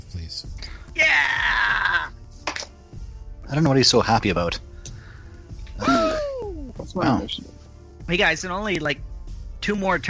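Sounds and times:
singer's loud high-pitched scream: 0:01.0 - 0:02.1, 0:05.8 - 0:06.6
speech: 0:03.5 - 0:04.7, 0:06.9 - 0:09.0, 0:09.6 - 0:10.0.

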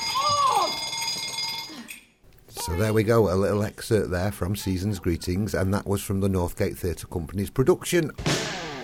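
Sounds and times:
alarm bell ringing: 0:00.0 - 0:01.9
speech: 0:02.6 - 0:08.4.

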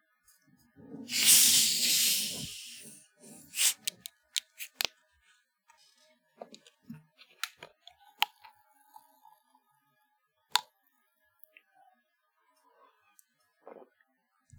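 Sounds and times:
soda bottle cracked open with a loud breathy hiss: 0:01.0 - 0:04.9.

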